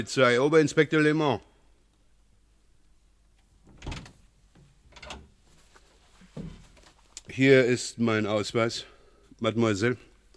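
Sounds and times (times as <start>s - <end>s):
speech: 0.0s - 1.5s, 7.4s - 10.1s
door being opened in a radio crime drama: 3.6s - 4.2s, 4.9s - 5.3s.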